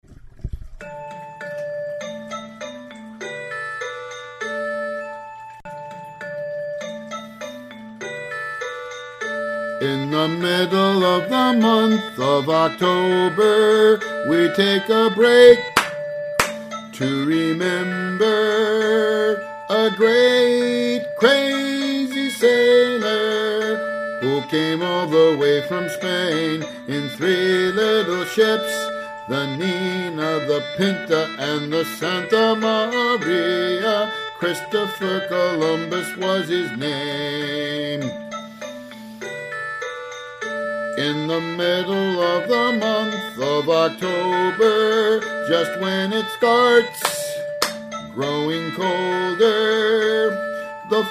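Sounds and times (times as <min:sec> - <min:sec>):
vocals: 0:09.6 - 0:38.8, 0:40.8 - 0:51.0.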